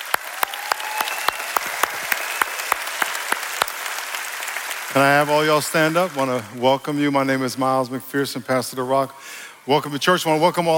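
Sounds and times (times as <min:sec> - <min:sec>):
church congregation clapping for the Lord: 0:00.0 - 0:07.5
speech: 0:04.9 - 0:10.7.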